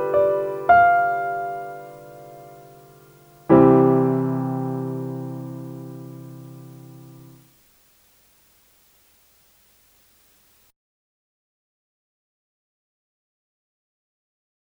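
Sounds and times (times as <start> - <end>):
solo piano: 0.0 - 7.5.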